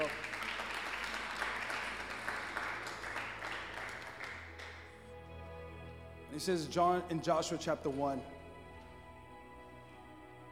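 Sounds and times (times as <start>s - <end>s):
crowd applauding: 0.0s - 5.1s
speech: 6.4s - 8.4s.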